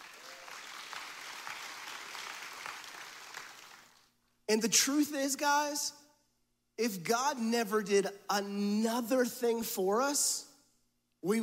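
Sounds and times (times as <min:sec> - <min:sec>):
audience clapping: 0:00.0 - 0:04.1
speech: 0:04.5 - 0:06.0, 0:06.8 - 0:10.5, 0:11.2 - 0:11.4.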